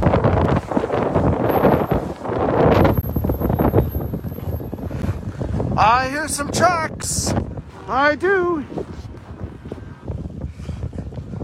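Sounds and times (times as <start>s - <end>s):
bitterly cold wind: 0.0s - 11.4s
speech: 6.2s - 8.8s.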